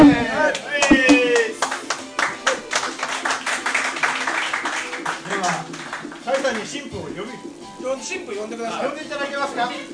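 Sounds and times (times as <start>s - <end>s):
wedding guests applauding as the groom enters: 0.5s - 6.8s
speech: 8.2s - 9.9s.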